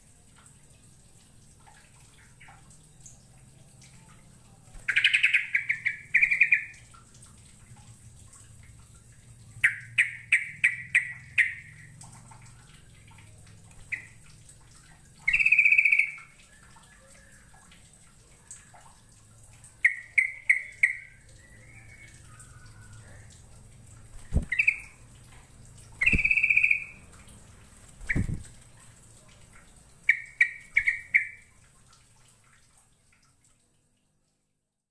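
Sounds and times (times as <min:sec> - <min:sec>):
bird chirps and trills: 0:04.7 - 0:06.9, 0:09.6 - 0:11.9, 0:13.8 - 0:14.2, 0:15.2 - 0:17.5, 0:19.8 - 0:23.4, 0:24.1 - 0:25.0, 0:25.9 - 0:27.1, 0:28.0 - 0:28.6, 0:30.0 - 0:31.5.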